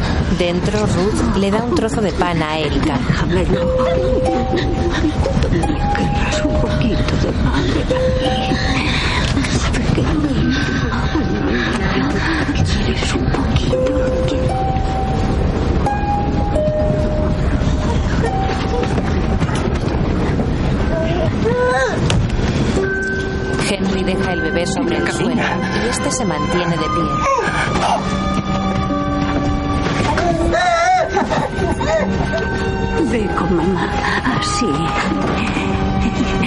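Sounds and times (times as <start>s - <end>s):
train rolling slowly along the rails: 0.0s - 36.4s
speech: 0.3s - 9.2s, 12.9s - 14.4s, 23.7s - 28.6s, 30.5s - 36.4s
tonal notes: 0.7s - 10.2s, 12.6s - 21.4s, 22.6s - 36.4s
laughter: 3.5s - 12.2s, 30.0s - 33.0s, 33.6s - 36.4s.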